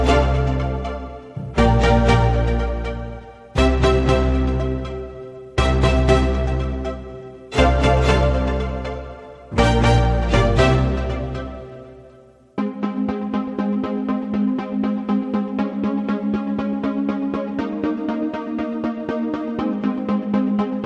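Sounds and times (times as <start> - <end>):
strings: 0.0 - 12.7
synths: 0.0 - 20.8.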